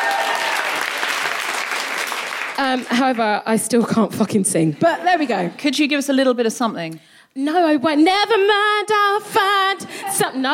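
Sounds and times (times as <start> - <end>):
audience clapping: 0.0 - 3.3
speech: 2.6 - 10.5.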